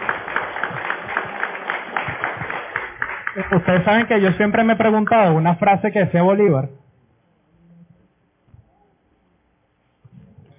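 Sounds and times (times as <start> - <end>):
crowd applauding: 0.0 - 5.1
speech: 3.4 - 6.8.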